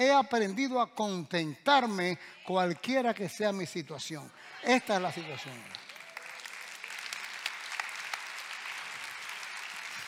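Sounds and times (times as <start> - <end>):
speech: 0.0 - 5.8
audience applause: 4.7 - 10.0.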